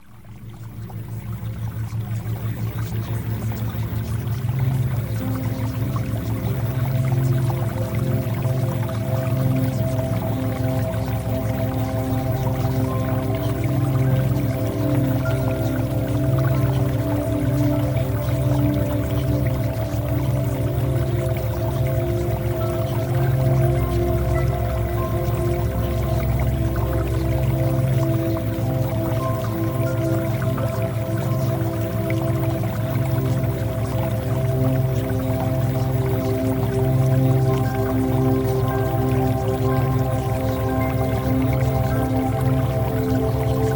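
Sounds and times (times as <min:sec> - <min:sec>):
theta wave music: 0:00.0 - 0:43.7.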